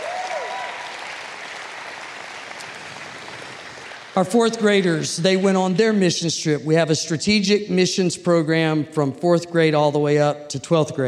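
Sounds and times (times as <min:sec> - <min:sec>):
audience clapping: 0:00.0 - 0:06.0
speech: 0:04.2 - 0:11.0.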